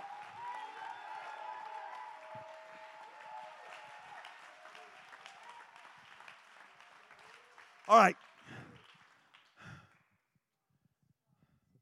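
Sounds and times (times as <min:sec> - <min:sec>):
audience clapping hands: 0:00.0 - 0:10.0
speech: 0:07.9 - 0:08.3.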